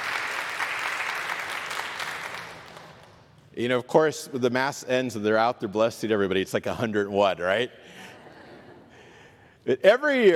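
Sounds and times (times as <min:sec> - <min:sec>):
audience applause: 0:00.0 - 0:03.1
speech: 0:03.6 - 0:08.1, 0:09.6 - 0:10.3
laughter: 0:07.9 - 0:09.0.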